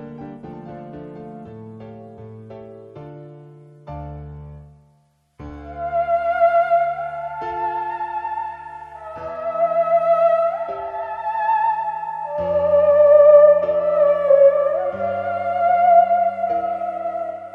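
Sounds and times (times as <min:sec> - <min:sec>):
theremin: 0:05.5 - 0:17.5.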